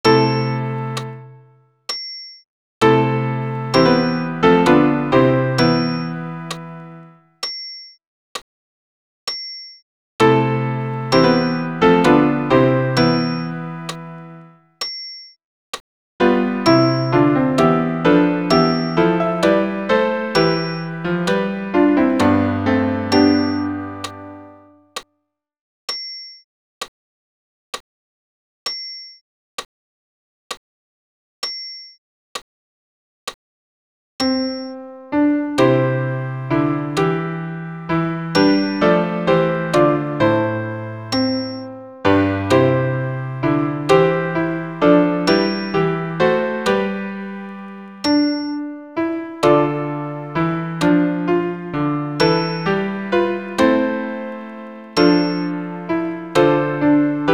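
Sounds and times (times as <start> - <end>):
piano piece: 0.0 - 1.6, 2.8 - 7.3, 10.2 - 14.6, 16.2 - 24.9, 34.2 - 57.3.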